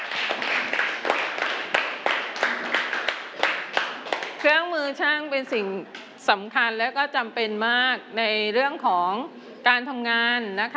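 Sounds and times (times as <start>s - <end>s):
group of children clapping: 0.0s - 4.6s
speech: 4.4s - 10.7s.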